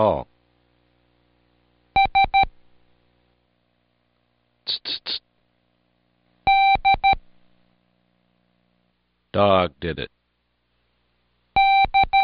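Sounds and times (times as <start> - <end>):
speech: 0.0 - 0.3, 9.3 - 10.2
Morse code beeps: 2.0 - 2.5, 6.5 - 7.2, 11.6 - 12.2.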